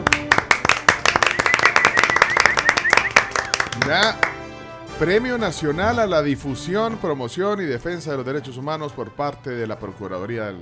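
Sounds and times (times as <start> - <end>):
group applauding: 0.0 - 4.6
speech: 3.9 - 4.3, 5.0 - 10.6.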